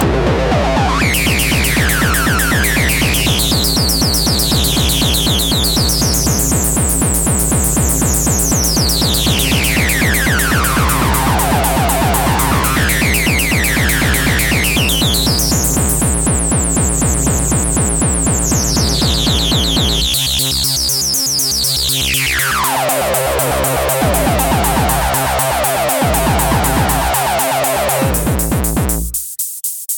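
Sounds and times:
hardcore music: 0:00.0 - 0:29.9.

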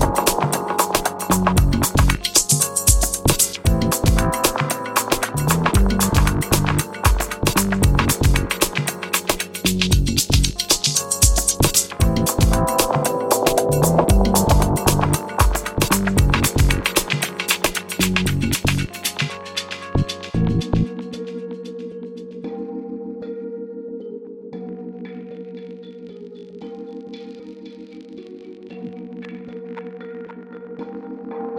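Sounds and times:
rainy music: 0:00.0 - 0:21.3.

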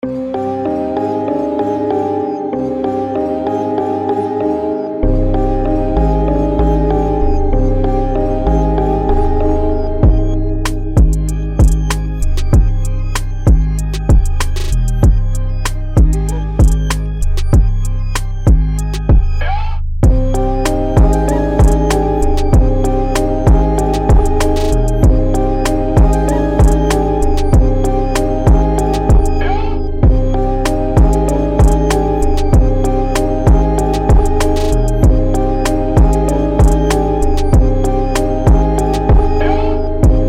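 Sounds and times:
trap beat: 0:01.3 - 0:40.2.

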